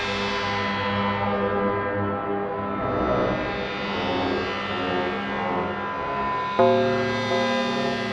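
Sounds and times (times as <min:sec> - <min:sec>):
drone: 0:00.2 - 0:08.1.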